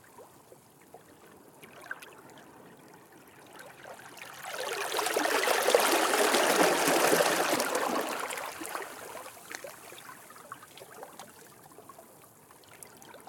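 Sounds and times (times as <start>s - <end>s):
very close small ocean waves flowing between rocks in Brittany: 1.5s - 11.6s.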